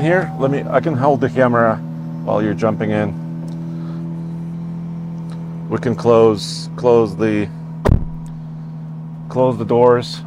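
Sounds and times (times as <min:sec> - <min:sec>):
speech: 0:00.0 - 0:03.2, 0:05.7 - 0:07.6, 0:09.3 - 0:10.2
truck engine starting up: 0:00.0 - 0:10.2.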